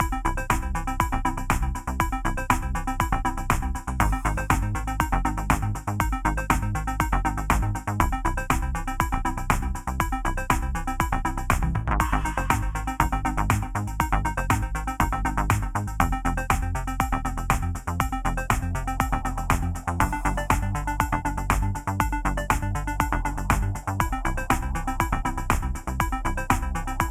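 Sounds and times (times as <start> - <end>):
arcade puzzler lo-fi chiptune music: 0.0 - 27.1.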